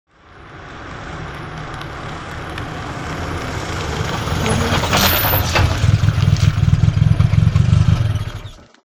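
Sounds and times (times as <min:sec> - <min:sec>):
sports car approaching and switching off: 0:00.1 - 0:08.8.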